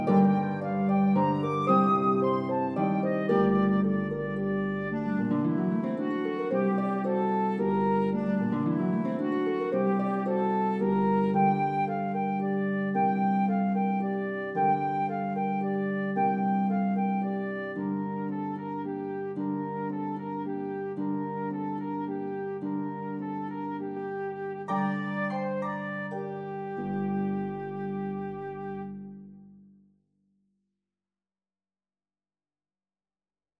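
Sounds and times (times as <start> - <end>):
flute: 0.0 - 29.5
pedal harp: 0.0 - 29.6.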